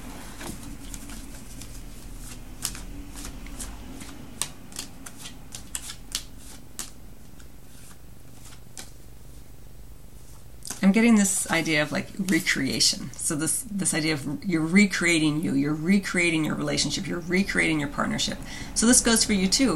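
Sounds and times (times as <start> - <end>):
tarot cards being shuffled: 0.2 - 9.1, 10.2 - 12.6
speech: 10.9 - 19.7.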